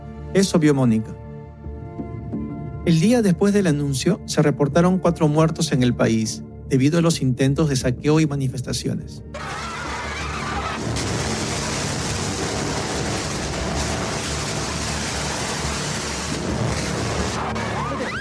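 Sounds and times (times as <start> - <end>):
speech: 0.3 - 1.2, 2.8 - 9.7
laughter: 9.4 - 10.9
water cannon firing at protesters: 10.3 - 18.1.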